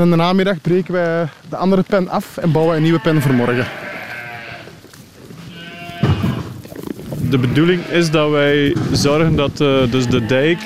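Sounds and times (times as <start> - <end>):
speech: 0.0 - 3.9, 7.3 - 10.6
sheep bleating: 2.3 - 4.8, 5.4 - 6.6, 7.2 - 8.6, 9.8 - 10.6.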